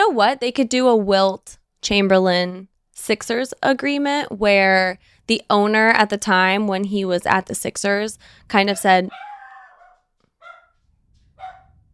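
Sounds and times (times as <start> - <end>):
speech: 0.1 - 9.3
dog barking at home: 8.6 - 11.9.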